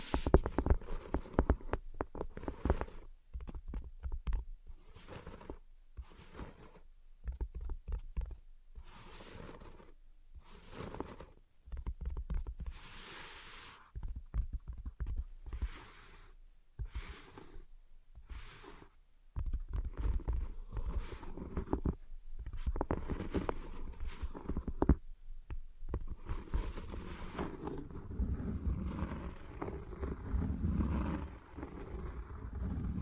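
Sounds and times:
tapping and scratching: 0.0s - 16.2s, 18.2s - 33.0s
rumbling scrape: 26.4s - 33.0s.

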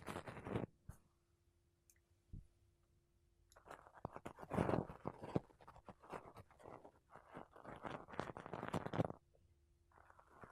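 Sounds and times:
makeup brushes and a sponge rubbing against a mic: 0.0s - 0.7s, 3.6s - 9.2s, 9.9s - 10.5s.

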